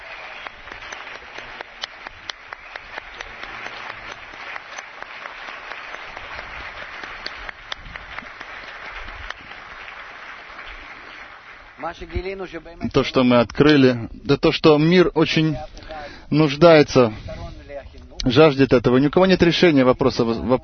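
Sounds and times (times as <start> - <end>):
audience applause: 0.0 - 12.8
speech: 11.8 - 15.7, 16.3 - 17.2, 18.2 - 20.6.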